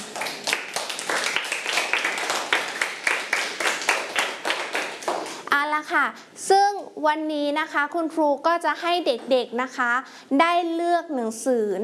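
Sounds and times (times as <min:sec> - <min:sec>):
group of children clapping together in a room: 0:00.0 - 0:05.4
speech: 0:05.9 - 0:11.8.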